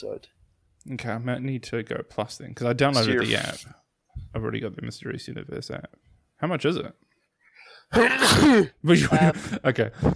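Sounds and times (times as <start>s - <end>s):
speech: 0.0s - 7.0s, 7.9s - 10.1s
man sneezing: 3.0s - 3.6s, 7.9s - 8.8s.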